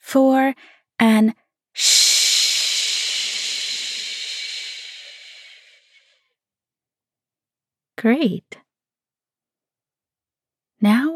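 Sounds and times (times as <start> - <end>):
speech: 0.1 - 2.0, 8.0 - 8.6, 10.8 - 11.1
person inhaling slowly during a guided breathing exercise: 1.8 - 6.2.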